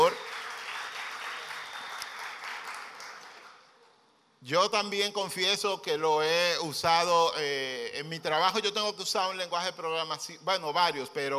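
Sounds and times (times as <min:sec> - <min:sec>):
audience applause: 0:00.0 - 0:03.6
speech: 0:04.4 - 0:11.3.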